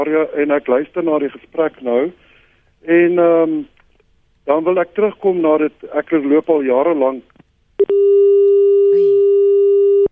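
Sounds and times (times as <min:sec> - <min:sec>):
speech: 0:00.0 - 0:02.2, 0:02.8 - 0:03.8, 0:04.5 - 0:08.3
telephone busy tone after a dropped call: 0:07.8 - 0:10.1.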